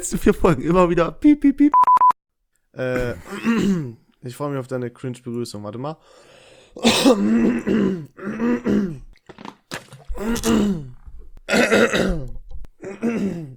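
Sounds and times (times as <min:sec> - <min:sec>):
speech: 0:00.0 - 0:02.0, 0:02.8 - 0:09.1, 0:10.2 - 0:10.9, 0:11.5 - 0:13.5
throat clearing: 0:02.9 - 0:04.0, 0:06.8 - 0:09.1, 0:11.5 - 0:13.5.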